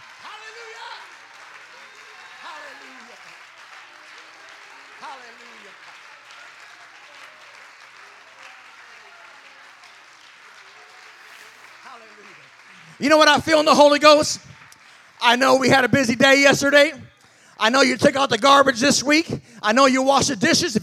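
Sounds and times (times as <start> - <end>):
audience clapping: 0.0 - 20.8
voices calling out and cheering: 0.0 - 20.8
speech: 13.0 - 14.5, 15.2 - 17.0, 17.6 - 20.8.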